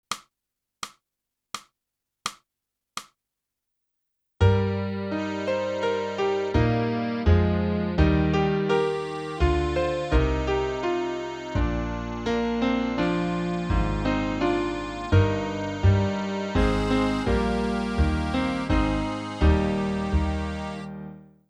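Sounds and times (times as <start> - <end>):
clarinet: 4.4 - 21.2.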